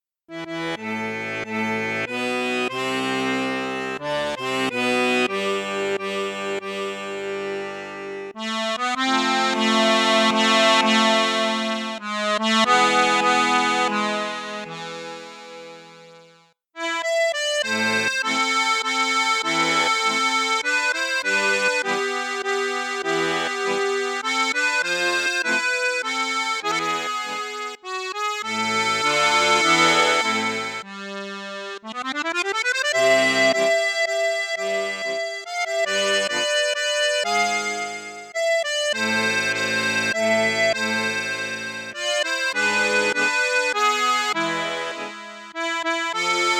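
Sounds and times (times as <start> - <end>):
accordion on high flute register: 0.0 - 46.5.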